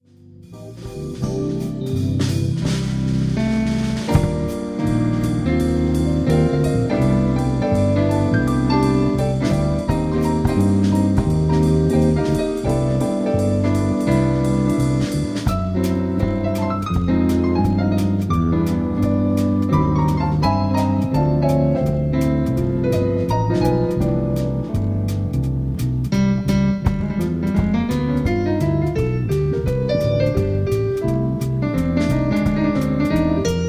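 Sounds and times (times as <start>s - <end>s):
jazz band playing: 0.2s - 33.6s.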